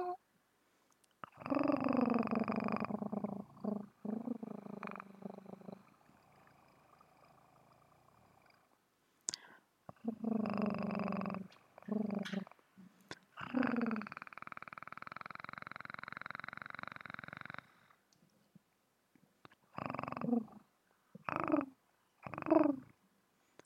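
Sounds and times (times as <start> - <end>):
purring: 1.2 - 8.8, 9.9 - 12.6, 13.2 - 18.0, 19.5 - 23.0.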